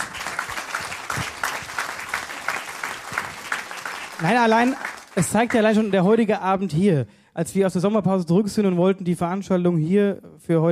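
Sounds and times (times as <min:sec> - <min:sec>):
audience applause: 0:00.0 - 0:06.1
speech: 0:04.2 - 0:10.7.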